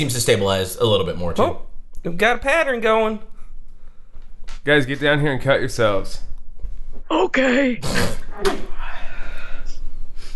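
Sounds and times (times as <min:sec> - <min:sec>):
speech: 0:00.0 - 0:03.3, 0:04.6 - 0:06.3, 0:07.1 - 0:08.7
sneeze: 0:07.8 - 0:08.7.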